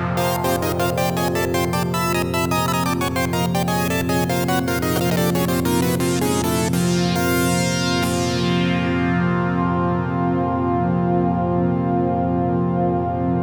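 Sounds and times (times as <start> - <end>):
Roland Jupiter-8 synthesizer factory patch: 0.2 - 13.3.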